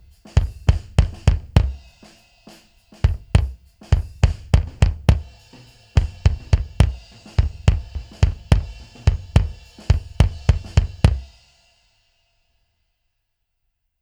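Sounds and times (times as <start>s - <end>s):
kick drum: 0.0s - 2.1s, 3.0s - 11.4s
drums: 0.0s - 12.5s.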